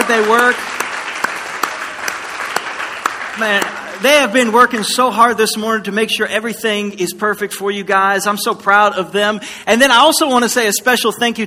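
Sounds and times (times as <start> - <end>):
audience applause: 0.0 - 5.0
speech: 0.1 - 0.7, 3.4 - 11.4.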